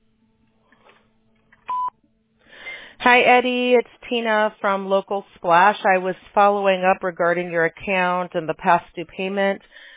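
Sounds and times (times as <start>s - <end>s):
telephone keypad tones: 1.7s - 1.9s
speech: 3.1s - 9.8s.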